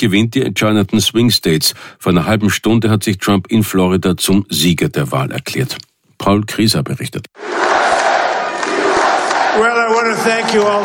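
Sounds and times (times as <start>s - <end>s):
speech: 0.0s - 7.7s, 9.6s - 10.8s
large crowd cheering and roaring at victory rally: 7.4s - 10.8s.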